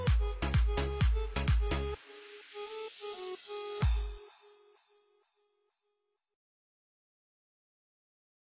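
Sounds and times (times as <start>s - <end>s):
Arabic remix music: 0.0s - 4.9s.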